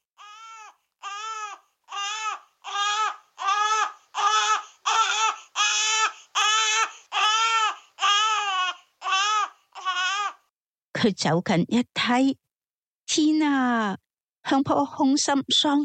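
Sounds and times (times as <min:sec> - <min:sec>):
baby crying: 0:00.2 - 0:10.5
speech: 0:11.0 - 0:12.4, 0:13.2 - 0:15.8.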